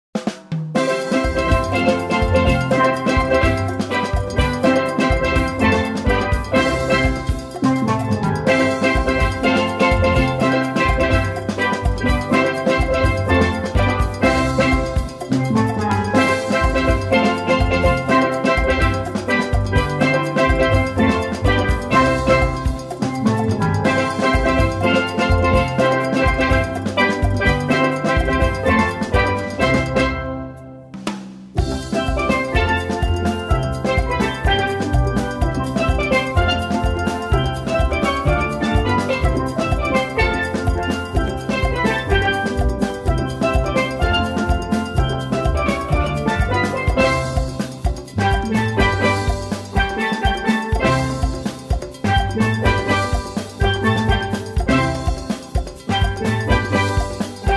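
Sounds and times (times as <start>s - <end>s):
steel band: 0.2s - 57.5s.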